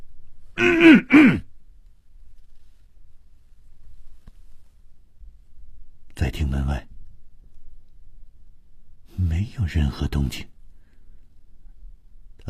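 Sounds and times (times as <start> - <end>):
single cough: 0.6 - 1.4
speech: 0.6 - 1.4, 9.7 - 10.6.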